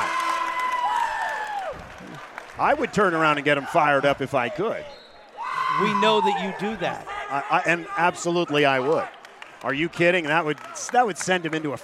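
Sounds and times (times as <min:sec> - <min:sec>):
shrill whistles and whoops: 0:00.0 - 0:01.8, 0:04.8 - 0:06.4
student section crowd cheering: 0:00.0 - 0:11.8
speech: 0:02.6 - 0:05.0, 0:05.7 - 0:11.8.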